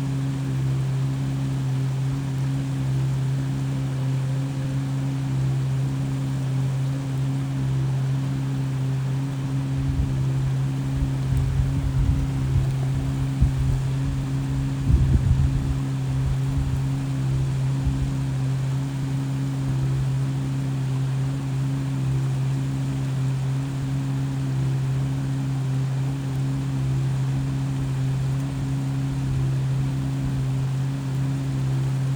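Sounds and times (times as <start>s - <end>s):
soft wash of water: 0.0s - 32.1s
big engine humming: 8.7s - 20.2s.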